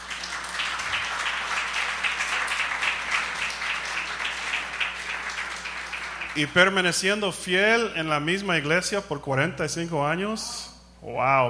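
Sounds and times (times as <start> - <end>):
audience applause: 0.0 - 6.8
speech: 6.4 - 11.4.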